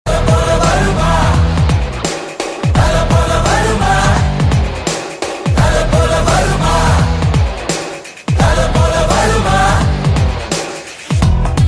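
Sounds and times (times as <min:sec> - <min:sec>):
rock music: 0:00.1 - 0:11.6.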